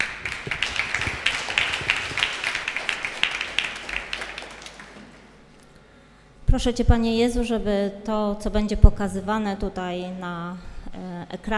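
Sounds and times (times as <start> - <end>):
audience applause: 0.0 - 5.8
speech: 6.5 - 11.5.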